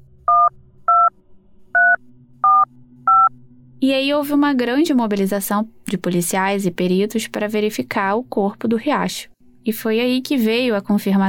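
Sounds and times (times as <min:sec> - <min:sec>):
telephone keypad dialing beeps: 0:01.8 - 0:03.3
speech: 0:03.8 - 0:11.2.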